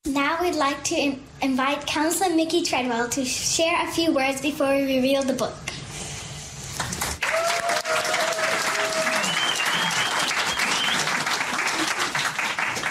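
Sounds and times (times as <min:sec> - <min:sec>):
speech: 0:00.2 - 0:05.8
audience applause: 0:06.8 - 0:12.8
faint whistles and cheers: 0:07.2 - 0:11.3.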